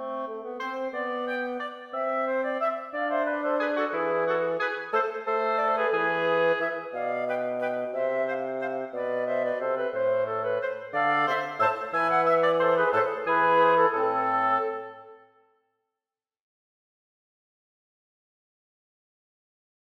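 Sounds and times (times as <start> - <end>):
wind quartet playing a gigue without harpsichord: 0.0 - 15.2.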